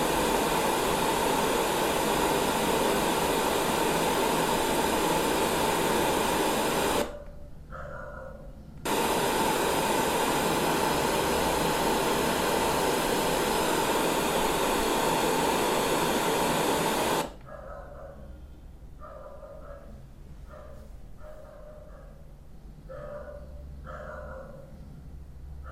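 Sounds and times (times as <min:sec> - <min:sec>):
Lectrofan Micro 2 white noise: 0:00.0 - 0:07.2, 0:08.8 - 0:17.5
barking dog: 0:07.1 - 0:08.6, 0:17.4 - 0:18.4, 0:19.0 - 0:22.3, 0:22.9 - 0:24.8.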